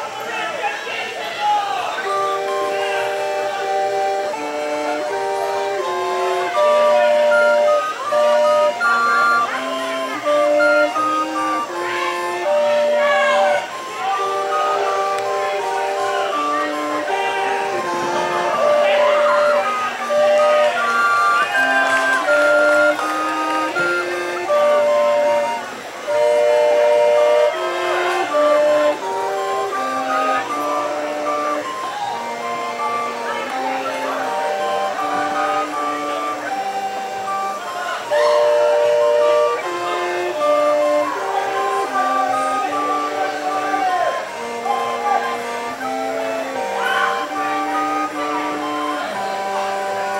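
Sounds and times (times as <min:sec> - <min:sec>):
recorders playing: 0:00.1 - 0:50.1.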